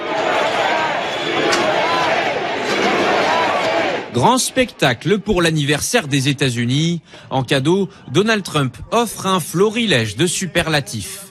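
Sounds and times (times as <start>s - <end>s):
large crowd cheering: 0.0s - 6.7s
speech: 4.2s - 11.2s.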